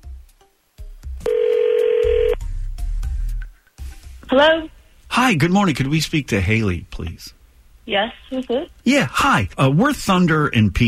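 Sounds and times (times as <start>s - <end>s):
telephone call being dialed: 1.3s - 2.4s
speech: 4.3s - 10.8s.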